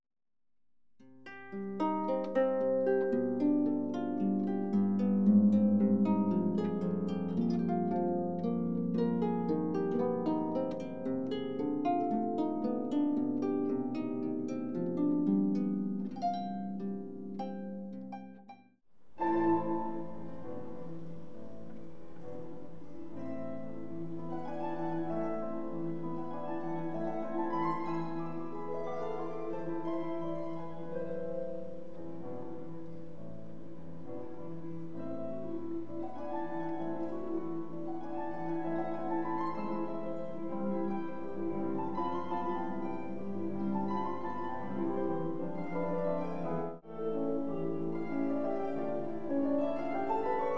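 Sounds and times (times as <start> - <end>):
music: 1.0 - 50.5.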